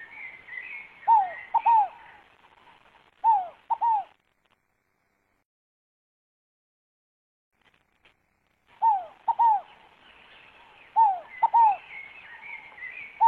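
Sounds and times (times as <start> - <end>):
scaled dove cooing: 1.0 - 2.2, 3.2 - 4.2, 8.8 - 13.2.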